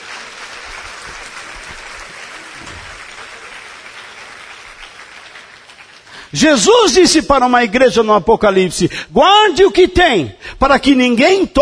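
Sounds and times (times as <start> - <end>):
congregation clapping during a church service: 0.0 - 7.8
speech: 6.3 - 11.6.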